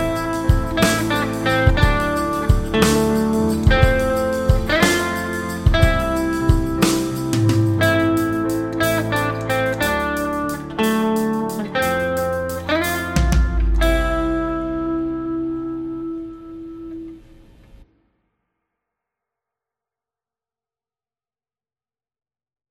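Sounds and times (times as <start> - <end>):
triad chord: 0.0 - 17.8.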